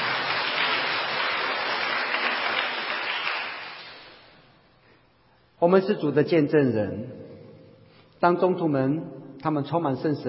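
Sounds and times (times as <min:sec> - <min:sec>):
crowd applause: 0:00.0 - 0:04.3
speech: 0:05.6 - 0:07.2, 0:08.2 - 0:10.2.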